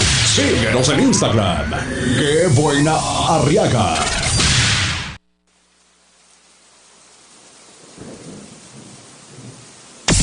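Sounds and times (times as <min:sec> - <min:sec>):
speech: 0:00.4 - 0:04.2
steady rain falling outside: 0:05.4 - 0:10.2.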